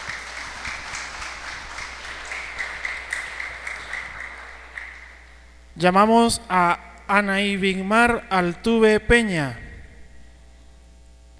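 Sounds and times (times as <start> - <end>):
audience applause: 0.0 - 5.4
speech: 5.8 - 9.6.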